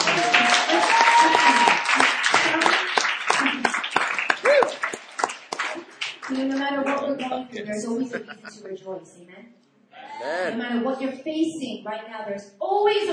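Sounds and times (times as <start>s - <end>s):
audience clapping: 0.0s - 7.4s
laughter: 7.3s - 9.0s
speech: 7.6s - 13.1s.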